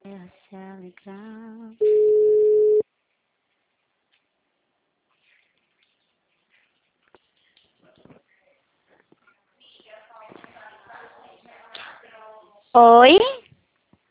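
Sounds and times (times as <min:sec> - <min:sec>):
speech: 0:00.9 - 0:01.3, 0:12.8 - 0:13.3
phone line busy-tone beep after a dropped call: 0:01.8 - 0:02.8.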